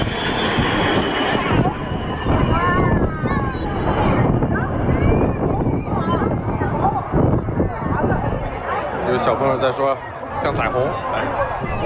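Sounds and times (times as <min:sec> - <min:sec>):
aerobatic display jets flying overhead: 0:00.0 - 0:11.8
speech: 0:09.2 - 0:11.8.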